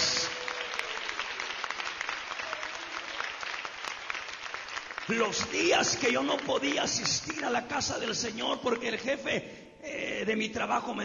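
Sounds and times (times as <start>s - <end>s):
audience applause: 0.0s - 7.5s
speech: 5.1s - 11.0s.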